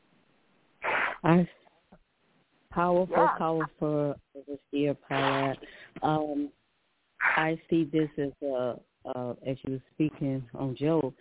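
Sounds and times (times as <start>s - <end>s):
nose blowing: 0.8s - 1.3s
speech: 1.2s - 1.6s, 2.8s - 6.6s, 7.3s - 11.1s.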